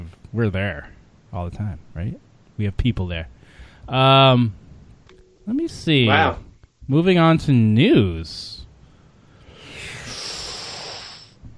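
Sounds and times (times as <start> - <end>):
speech: 0.1 - 4.6, 5.5 - 8.6
deep breath inhale as a transition noise: 3.4 - 3.9, 8.8 - 11.4.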